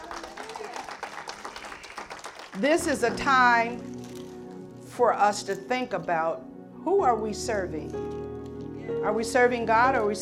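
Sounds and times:
audience hand clapping: 0.0 - 3.0
speech: 2.6 - 4.0, 5.0 - 8.2, 8.9 - 10.1.

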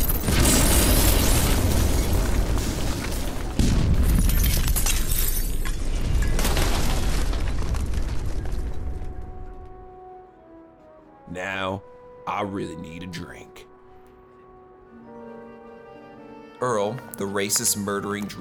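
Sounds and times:
thermal detonator explosion in an alley: 0.0 - 9.6
debris crackling: 0.0 - 10.2
speech: 12.5 - 13.4, 16.6 - 18.3.

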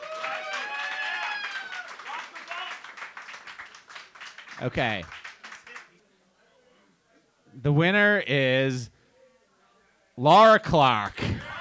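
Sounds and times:
whoops and voices: 0.0 - 1.9
audience applause: 0.0 - 5.9
speech: 4.6 - 5.2, 7.6 - 9.0, 10.2 - 11.3.

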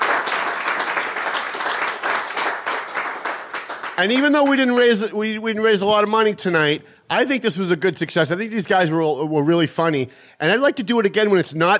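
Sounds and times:
audience applause: 0.0 - 4.6
speech: 4.0 - 11.7.

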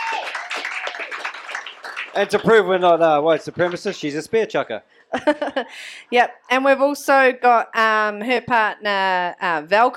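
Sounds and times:
crowd applause: 0.0 - 4.2
speech: 0.1 - 9.9.

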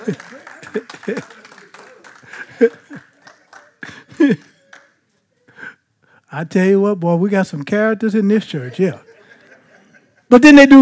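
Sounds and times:
speech: 0.0 - 1.4, 2.6 - 2.8, 6.4 - 9.1, 10.3 - 10.7
laughter: 0.0 - 4.9, 8.8 - 10.3
audience hand clapping: 0.0 - 5.0.

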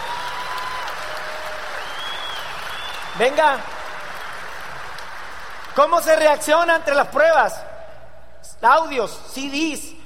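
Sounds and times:
audience applause: 0.0 - 6.1
faint whistles: 1.8 - 3.2
speech: 3.2 - 3.7, 5.8 - 7.6, 8.6 - 10.0.

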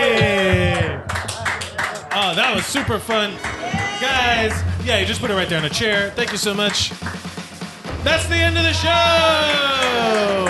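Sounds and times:
audience applause: 0.0 - 10.4
speech: 2.2 - 7.2, 8.0 - 10.4.

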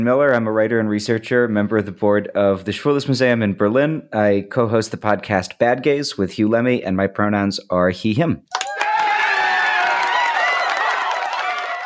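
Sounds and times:
speech: 0.0 - 8.6
live studio audience cheering and applause sound effect: 8.5 - 11.8.

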